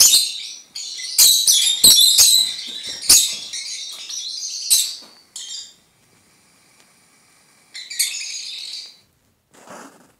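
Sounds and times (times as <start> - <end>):
lovebird twittering song: 0.0 - 5.8, 7.8 - 9.0.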